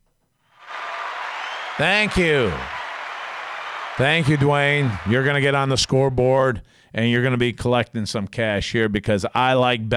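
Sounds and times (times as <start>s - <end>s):
clapping sound effect: 0.6s - 5.3s
speech: 1.8s - 2.7s, 4.0s - 9.9s.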